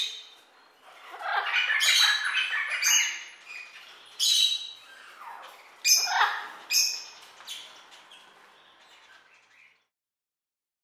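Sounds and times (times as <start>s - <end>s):
parrots squawking: 0.0s - 8.3s.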